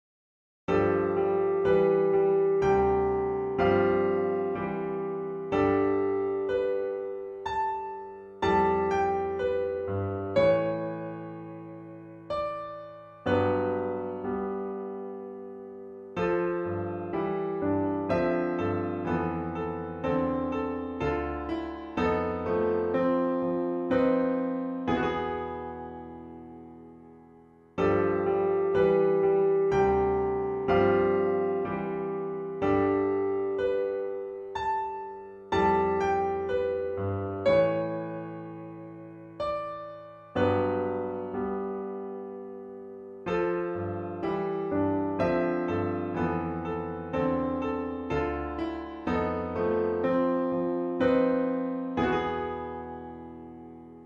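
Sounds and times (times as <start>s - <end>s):
piano duet: 0.7s - 54.0s.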